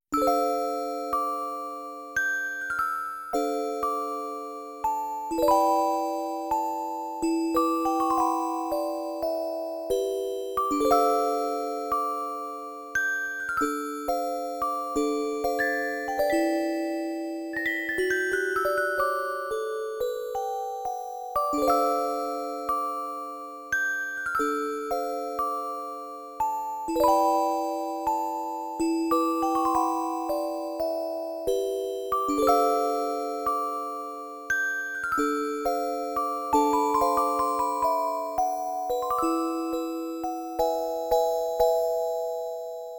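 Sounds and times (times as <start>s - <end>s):
music box: 0.2s - 42.9s.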